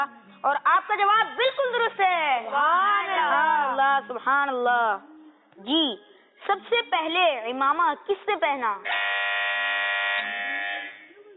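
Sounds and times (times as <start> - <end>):
speech: 0.0 - 9.0
quiz buzzer: 8.8 - 11.2.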